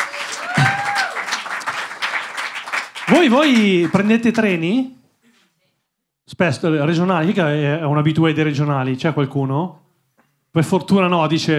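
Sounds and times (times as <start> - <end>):
crowd applause: 0.0 - 4.1
speech: 3.1 - 5.0, 6.3 - 9.8, 10.5 - 11.5.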